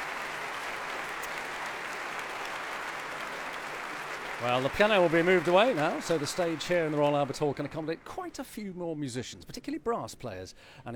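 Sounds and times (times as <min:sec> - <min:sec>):
concert audience applause at the Royal Albert Hall: 0:00.0 - 0:08.3
speech: 0:04.4 - 0:10.9.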